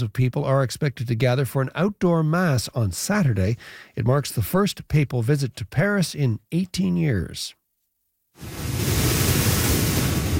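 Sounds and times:
speech: 0:00.0 - 0:07.6
hurricane waves crashing into beachfront homes: 0:08.4 - 0:10.3.

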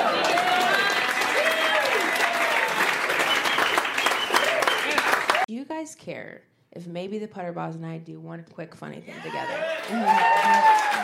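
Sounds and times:
audience applause for a stand-up comedian: 0:00.0 - 0:05.5, 0:09.3 - 0:11.0
speech: 0:06.1 - 0:11.0.

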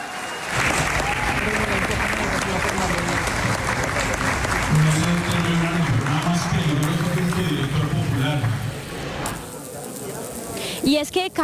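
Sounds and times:
audience applause: 0:00.0 - 0:09.4
murmur of voices: 0:00.5 - 0:11.4.

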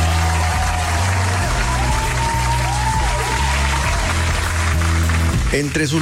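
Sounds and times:
crowd applauding: 0:00.0 - 0:05.9.

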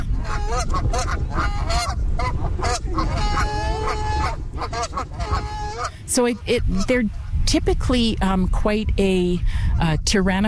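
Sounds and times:
geese honking: 0:00.0 - 0:07.1
speech: 0:06.1 - 0:10.4.

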